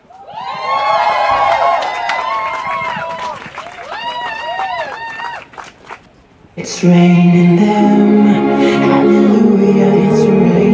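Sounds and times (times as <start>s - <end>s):
crowd applause and cheering: 0.0s - 6.1s
speech: 6.8s - 10.6s.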